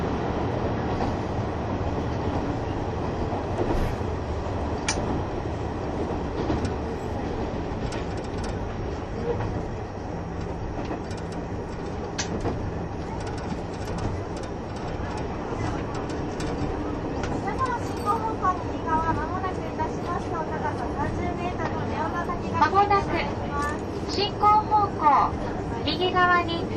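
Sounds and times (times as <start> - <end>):
KiHa 71 Yufuin no Mori diesel train running rumble: 0.0 - 26.7
clicks and rattles inside the diesel train: 7.7 - 9.6, 10.4 - 18.4
people talking inside the train: 17.3 - 26.7.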